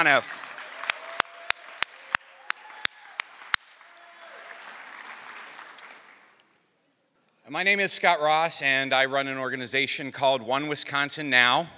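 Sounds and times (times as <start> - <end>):
speech: 0.0 - 0.4, 7.5 - 11.7
audience applause: 0.0 - 6.6.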